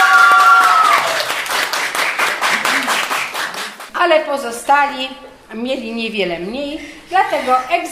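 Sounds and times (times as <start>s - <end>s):
audience applause: 0.0s - 3.9s
speech: 4.0s - 7.9s.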